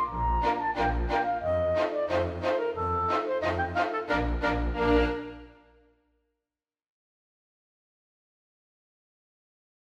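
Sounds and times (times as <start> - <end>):
polka music: 0.0 - 5.8.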